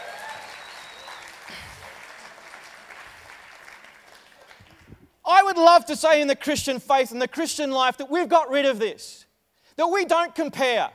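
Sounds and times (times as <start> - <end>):
whistles: 0.0 - 1.4
large crowd applause: 0.0 - 4.9
speech: 5.3 - 9.2, 9.8 - 10.9.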